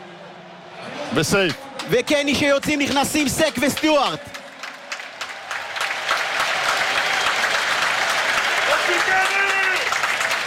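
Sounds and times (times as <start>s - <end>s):
speech: 1.1s - 4.3s
stadium crowd standing and applauding: 2.8s - 10.4s.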